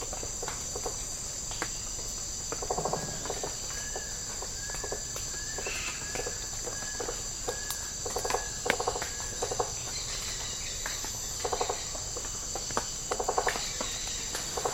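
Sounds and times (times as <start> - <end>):
tropical rainforest habitat insects: 0.0 - 14.7.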